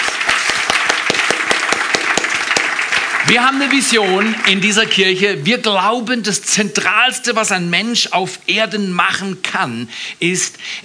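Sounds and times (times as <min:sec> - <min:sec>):
audience applause: 0:00.0 - 0:05.2
speech: 0:03.3 - 0:10.8.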